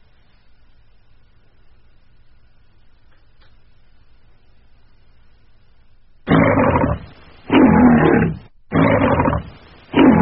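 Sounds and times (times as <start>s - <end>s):
MGM film studio logo lion roar: 6.3s - 10.1s.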